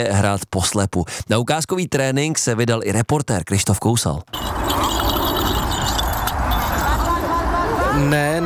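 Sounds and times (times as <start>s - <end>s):
speech: 0.0s - 5.1s, 8.0s - 8.4s
bell-filled ball jingling in blind baseball practice: 4.3s - 7.4s.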